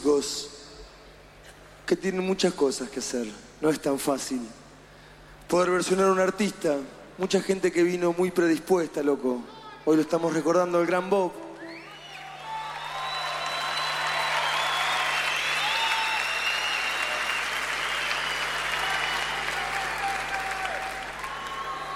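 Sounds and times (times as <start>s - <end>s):
speech: 0.2s - 0.5s, 1.9s - 4.6s, 5.5s - 11.4s
audience applause: 12.0s - 21.9s.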